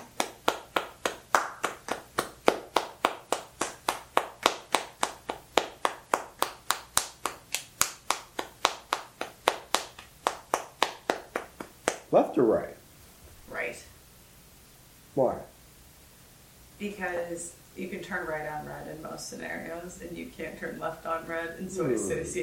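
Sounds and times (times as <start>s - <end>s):
single person clapping steadily: 0.0s - 12.1s
speech: 12.1s - 12.8s, 15.2s - 15.5s, 16.8s - 22.4s
laughter: 21.8s - 22.4s.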